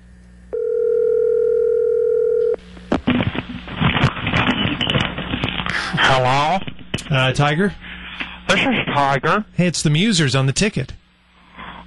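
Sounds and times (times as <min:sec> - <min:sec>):
steady buzzing electronic telephone line tone: 0:00.5 - 0:02.6
loud crackling telephone line static: 0:02.3 - 0:11.8
speech: 0:06.2 - 0:07.8, 0:08.5 - 0:11.0.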